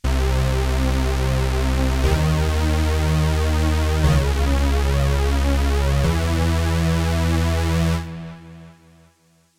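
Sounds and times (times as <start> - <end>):
Roland Cloud Juno-106 synthesizer: 0.0 - 9.5.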